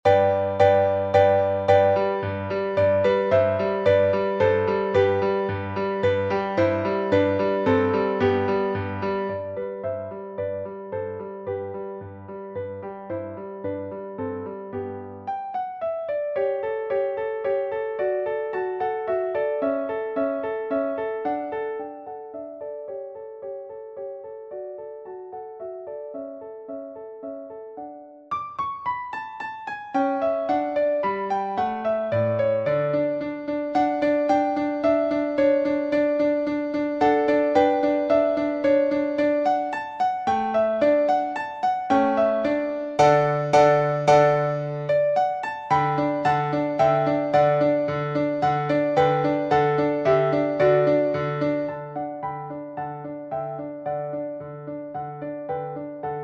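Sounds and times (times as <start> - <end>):
moderately fast instrumental music: 0.0 - 56.2.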